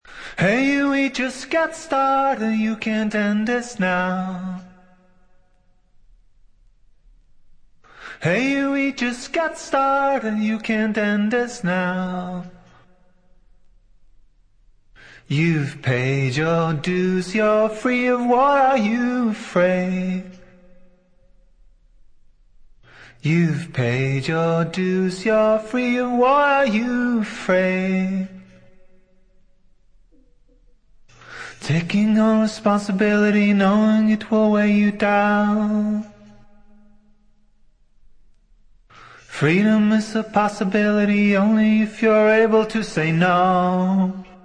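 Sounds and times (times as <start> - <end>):
a cappella singing: 0.3 - 5.0, 8.2 - 12.9, 15.2 - 20.5, 23.2 - 28.7, 31.6 - 36.9, 39.2 - 44.4.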